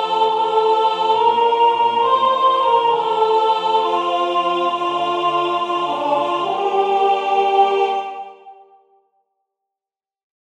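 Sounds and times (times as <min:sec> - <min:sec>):
soprano singing a hymn: 0:00.0 - 0:08.7.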